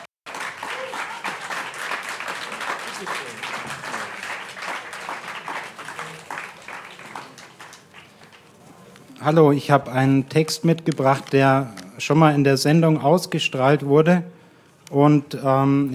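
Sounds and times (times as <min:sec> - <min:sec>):
audience applause: 0:00.0 - 0:08.6
speech: 0:09.2 - 0:15.9.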